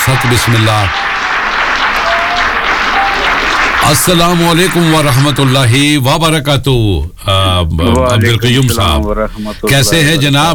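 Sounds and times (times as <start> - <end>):
studio audience applause on a radio show: 0.0 - 5.9
speech: 0.1 - 1.2, 3.8 - 10.5.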